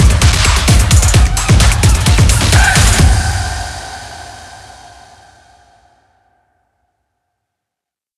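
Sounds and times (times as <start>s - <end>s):
techno stomping beat: 0.0s - 4.8s.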